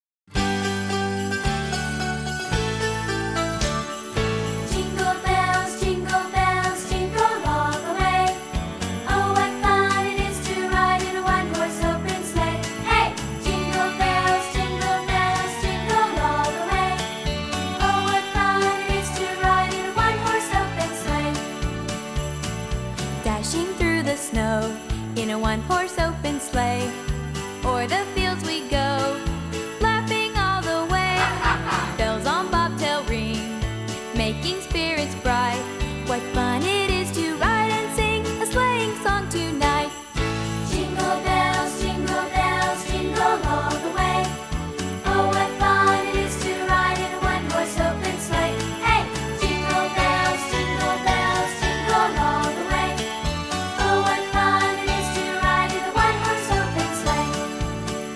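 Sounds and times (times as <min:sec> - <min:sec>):
Christmas song: 0:00.3 - 0:58.1
laughter: 0:31.0 - 0:32.5.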